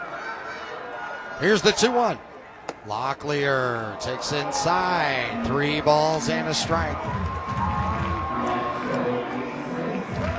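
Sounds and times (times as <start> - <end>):
stadium crowd roaring: 0.0 - 10.3
speech: 1.4 - 7.6
stadium crowd chanting: 2.9 - 10.3
stadium crowd clapping: 4.1 - 10.3.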